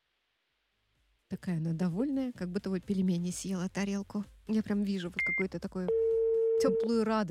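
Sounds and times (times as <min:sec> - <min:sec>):
speech: 0:01.4 - 0:07.2
touch-tone keypad beeps: 0:05.2 - 0:06.1.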